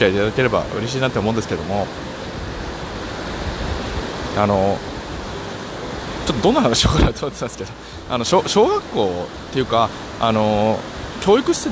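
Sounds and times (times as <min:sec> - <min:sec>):
speech: 0:00.0 - 0:02.2, 0:04.4 - 0:04.9, 0:06.3 - 0:11.7
muddy river in flood rushing: 0:00.0 - 0:11.7.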